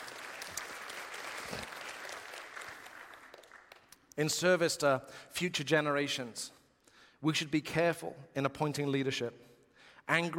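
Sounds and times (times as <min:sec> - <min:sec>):
audience applause: 0:00.0 - 0:04.0
speech: 0:04.2 - 0:06.6, 0:07.2 - 0:10.3.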